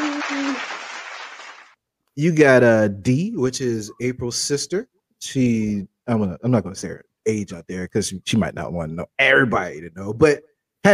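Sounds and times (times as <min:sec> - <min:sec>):
hand clapping: 0:00.0 - 0:01.8
speech: 0:02.2 - 0:10.9.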